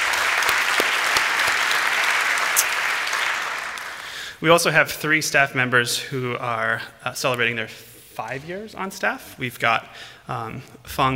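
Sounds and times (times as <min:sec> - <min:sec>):
audience applause: 0:00.0 - 0:04.4
speech: 0:04.4 - 0:11.1.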